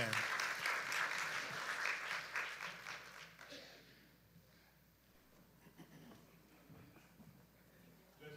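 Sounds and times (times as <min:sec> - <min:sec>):
hand clap applause: 0:00.0 - 0:04.0.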